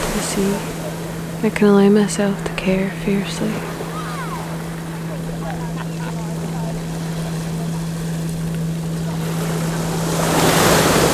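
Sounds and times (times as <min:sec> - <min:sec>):
ocean tide waves washing onto a shore with sand and pebbles: 0:00.0 - 0:11.1
speech: 0:00.2 - 0:00.8, 0:01.4 - 0:03.7
laughter: 0:03.3 - 0:08.3.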